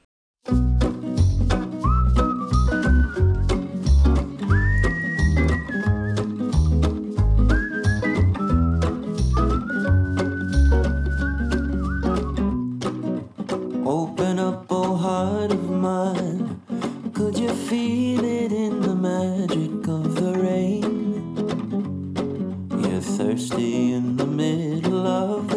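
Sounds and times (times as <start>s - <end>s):
strummed acoustic guitar chords: 0.5s - 25.5s
high sustained whistle-like melody: 1.5s - 12.8s.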